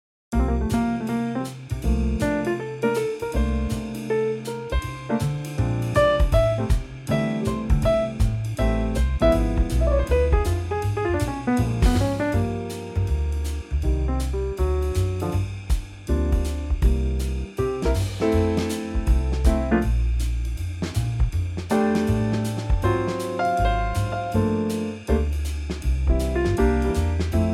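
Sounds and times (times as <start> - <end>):
instrumental trio in F: 0.3 - 27.5.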